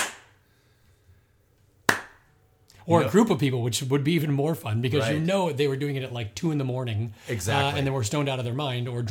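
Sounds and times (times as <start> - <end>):
hand claps layered on snare hits: 0.0 - 0.4, 1.9 - 2.3
speech: 2.9 - 9.0.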